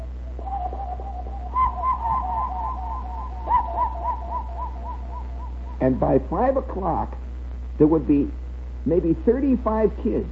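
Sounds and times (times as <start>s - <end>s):
person whistling an imitation of a cuckoo: 0.0s - 5.8s
constant low hum: 0.0s - 10.3s
speech: 5.8s - 10.3s.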